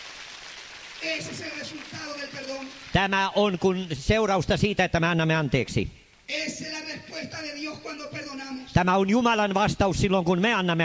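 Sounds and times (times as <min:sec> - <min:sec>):
audience applause: 0:00.0 - 0:03.2
speech: 0:01.0 - 0:10.8.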